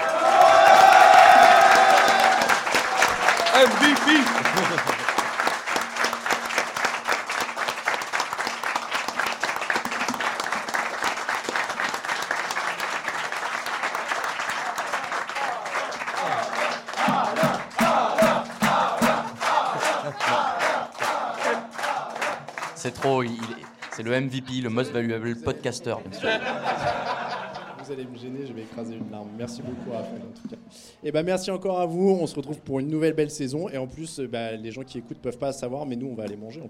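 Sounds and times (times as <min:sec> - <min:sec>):
crowd cheering and whooping: 0:00.0 - 0:05.0, 0:18.8 - 0:22.3
large crowd applauding: 0:00.0 - 0:24.8
laughter: 0:03.0 - 0:05.4, 0:16.0 - 0:16.8, 0:19.2 - 0:20.9, 0:25.9 - 0:30.4
speech: 0:03.6 - 0:05.0, 0:23.1 - 0:27.0, 0:27.9 - 0:36.6.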